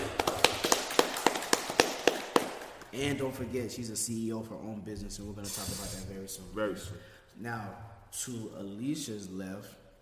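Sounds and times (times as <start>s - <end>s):
audience clapping: 0.0s - 3.2s
speech: 3.0s - 9.8s.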